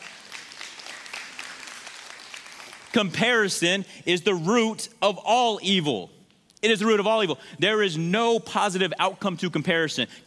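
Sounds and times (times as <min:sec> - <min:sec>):
audience clapping: 0:00.0 - 0:03.5
speech: 0:02.9 - 0:10.2.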